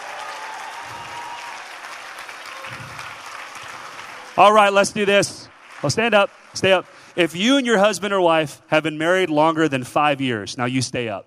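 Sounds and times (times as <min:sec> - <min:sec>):
crowd applause: 0:00.0 - 0:07.9
speech: 0:04.4 - 0:11.2.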